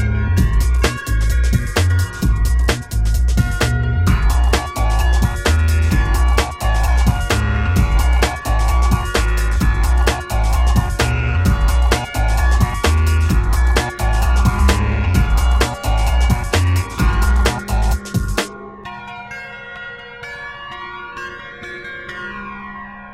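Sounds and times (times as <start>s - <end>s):
guitar: 0.0s - 19.1s
pipa: 4.1s - 18.6s.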